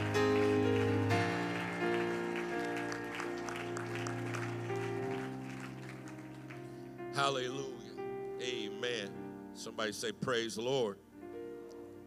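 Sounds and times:
audience hand clapping: 0.0s - 6.8s
speech: 7.2s - 7.8s, 8.4s - 11.1s.

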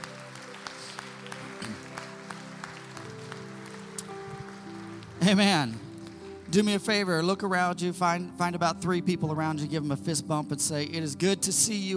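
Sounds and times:
audience clapping hands in praise: 0.0s - 7.5s
speech: 5.3s - 5.8s, 6.5s - 11.9s.

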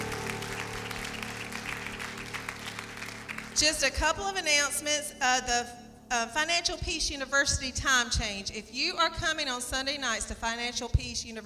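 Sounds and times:
church congregation applauding: 0.0s - 3.9s
speech: 3.6s - 11.4s.

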